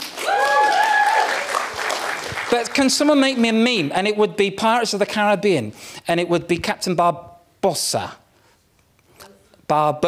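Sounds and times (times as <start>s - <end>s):
round of applause: 0.0s - 3.3s
speech: 2.5s - 8.2s, 9.7s - 10.0s.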